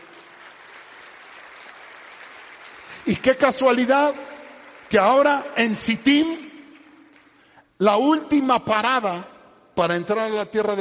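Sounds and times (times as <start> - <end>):
audience clapping: 0.0 - 7.6
speech: 3.0 - 4.3, 4.9 - 6.4, 7.8 - 10.8.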